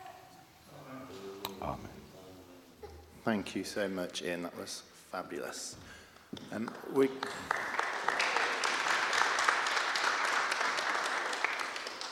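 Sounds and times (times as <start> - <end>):
speech: 1.6 - 2.0, 3.2 - 7.6
audience clapping: 6.2 - 12.1.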